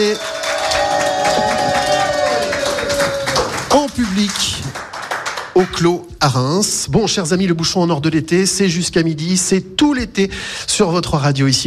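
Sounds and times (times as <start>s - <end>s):
speech: 0.0s - 0.3s, 5.6s - 11.6s
cheering: 0.0s - 4.4s
live audience applause: 0.0s - 5.9s.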